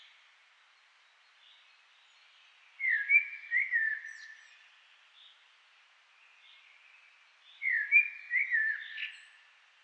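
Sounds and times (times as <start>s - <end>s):
common blackbird Turdus merula singing: 2.8s - 4.6s, 7.5s - 9.4s.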